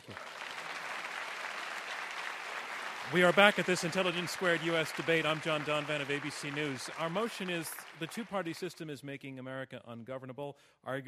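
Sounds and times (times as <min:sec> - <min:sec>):
audience applause: 0:00.0 - 0:08.7
speech: 0:03.1 - 0:11.0.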